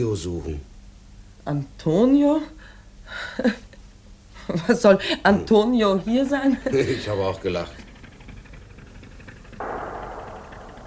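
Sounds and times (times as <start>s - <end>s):
speech: 0.0s - 0.7s, 1.5s - 3.7s, 4.5s - 7.8s
gunshot: 9.6s - 10.8s.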